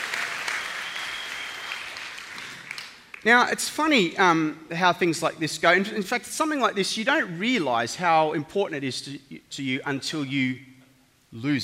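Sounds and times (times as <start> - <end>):
audience of children and adults applauding: 0.0 - 3.2
speech: 3.2 - 10.7, 11.3 - 11.6.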